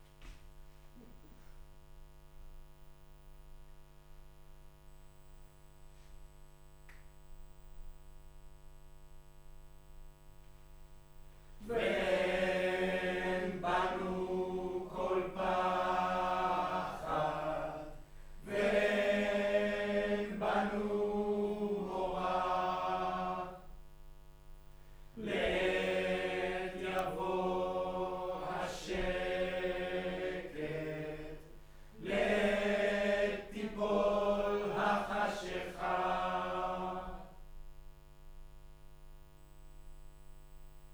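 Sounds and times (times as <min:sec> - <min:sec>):
choir singing in room: 0:11.6 - 0:23.8, 0:25.2 - 0:37.4.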